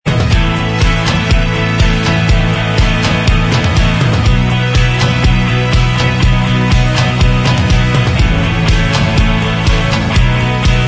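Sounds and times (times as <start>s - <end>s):
instrumental backing track: 0.1s - 10.8s.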